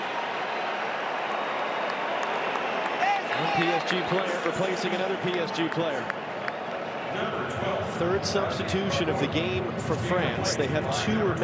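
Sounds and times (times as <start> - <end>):
stadium crowd applause: 0.0 - 8.2
speech: 3.4 - 6.3, 7.1 - 11.4.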